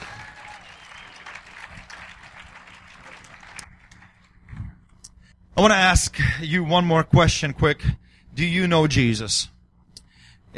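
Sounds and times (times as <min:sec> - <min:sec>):
church audience clapping: 0:00.0 - 0:04.9
speech: 0:05.6 - 0:09.6.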